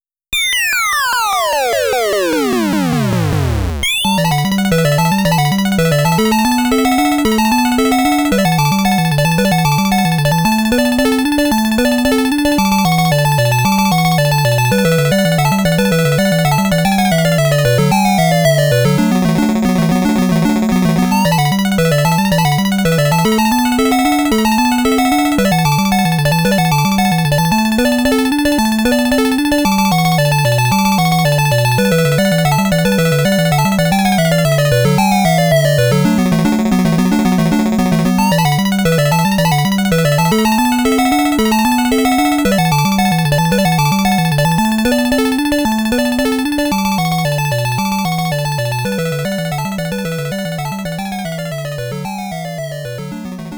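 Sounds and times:
underground warp background game music: 0.4s - 53.5s.

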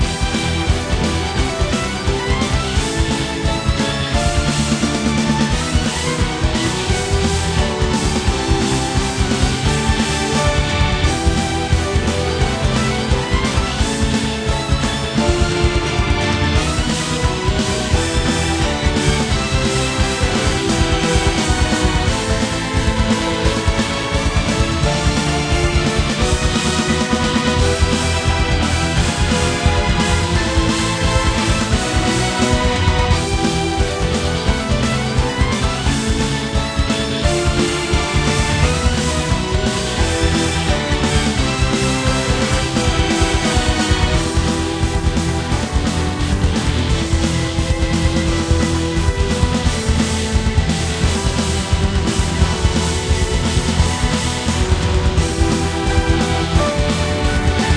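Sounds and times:
battle music loop: 0.0s - 57.7s.

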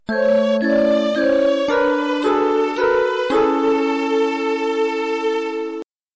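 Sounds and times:
game over jingle: 0.1s - 5.0s.

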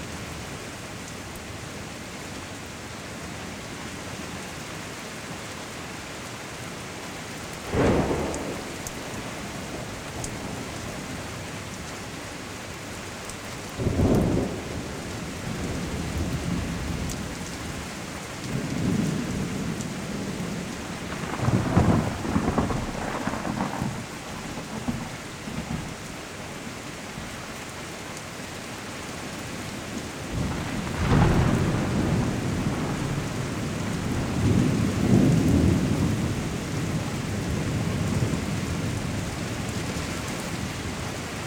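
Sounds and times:
rain: 0.0s - 41.4s
thunderstorm: 7.6s - 11.7s, 13.8s - 26.1s, 30.0s - 41.4s.

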